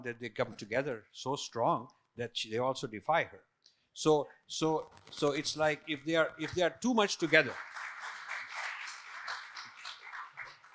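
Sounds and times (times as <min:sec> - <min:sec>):
speech: 0:00.0 - 0:07.9
audience clapping: 0:06.4 - 0:10.7.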